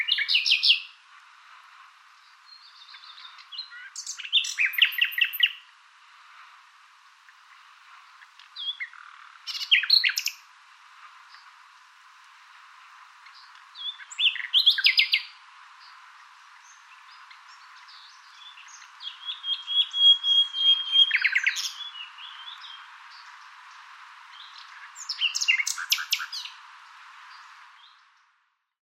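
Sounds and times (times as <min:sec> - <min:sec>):
bird chirping and twittering: 0:00.0 - 0:01.0, 0:02.2 - 0:05.7, 0:07.3 - 0:10.5, 0:13.2 - 0:26.6.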